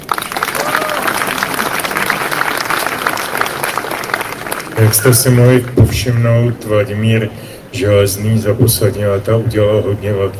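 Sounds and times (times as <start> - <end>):
audience applause: 0.0 - 5.9
speech: 4.8 - 10.3.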